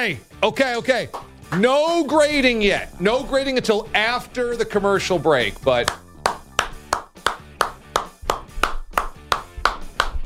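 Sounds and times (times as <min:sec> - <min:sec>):
speech: 0:00.0 - 0:06.0
polite tennis-style hand clapping: 0:00.6 - 0:01.7, 0:05.6 - 0:10.2.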